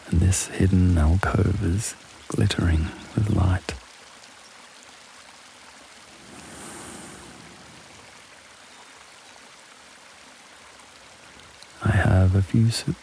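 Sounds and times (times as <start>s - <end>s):
speech: 0.1s - 3.8s, 12.4s - 13.0s
waterfall rushing: 6.0s - 8.9s.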